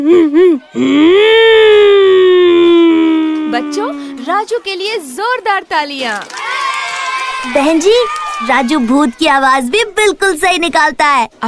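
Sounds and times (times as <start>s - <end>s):
speech: 0.0s - 2.0s, 3.6s - 6.4s, 7.4s - 11.4s
child's voice imitating a motor car: 0.0s - 4.4s.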